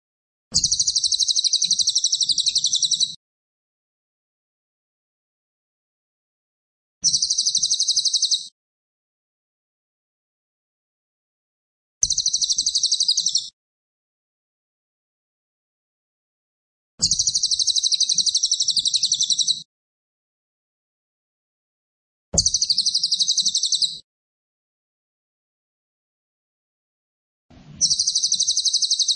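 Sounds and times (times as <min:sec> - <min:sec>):
cililin singing fast shrill pulsed trills: 0:00.6 - 0:03.2, 0:07.1 - 0:08.5, 0:12.1 - 0:13.5, 0:17.0 - 0:19.6, 0:22.4 - 0:24.0, 0:27.8 - 0:29.1.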